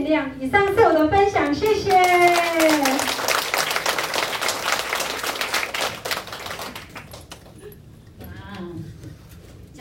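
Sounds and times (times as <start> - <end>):
speech: 0.2 - 2.4
audience applause: 2.0 - 7.6.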